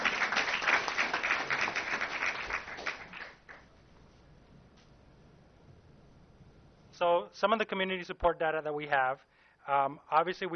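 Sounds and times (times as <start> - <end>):
audience clapping: 0.0 - 3.7
speech: 7.0 - 10.5.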